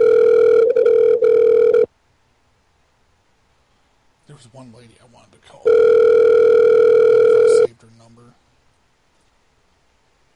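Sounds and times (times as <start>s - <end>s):
telephone ringing with electronic ring tone: 0.0s - 1.9s, 5.6s - 7.7s
speech: 4.5s - 5.8s.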